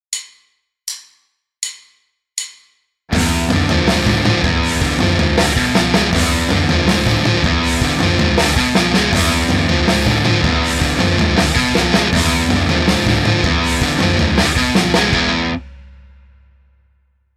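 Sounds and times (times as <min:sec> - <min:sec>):
guitar riff: 0:03.1 - 0:15.6.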